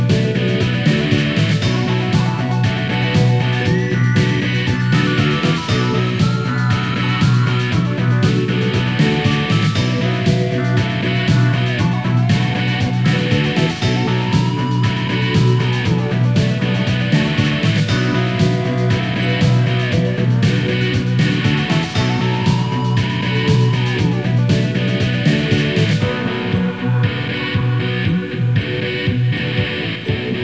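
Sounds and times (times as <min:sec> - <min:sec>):
rock style music: 0:00.0 - 0:30.4.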